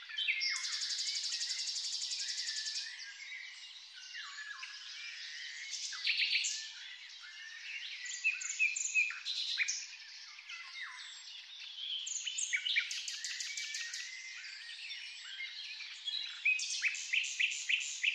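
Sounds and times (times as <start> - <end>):
birds: 0.0 - 18.1.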